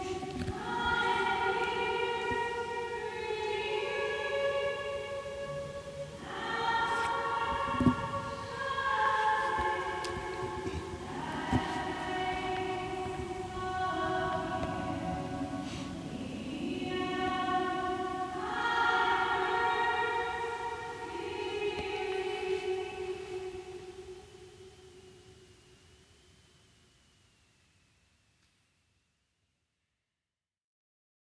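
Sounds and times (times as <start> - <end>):
students singing in Santo Domingo: 0.0 - 24.8.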